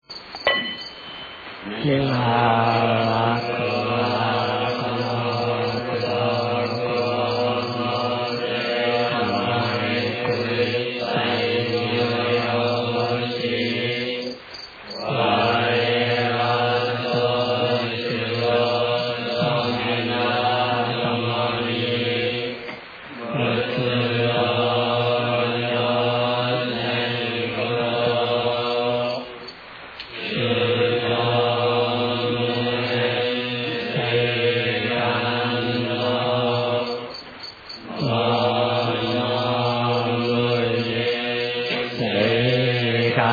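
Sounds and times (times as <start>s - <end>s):
end chant: 0.5s - 43.3s.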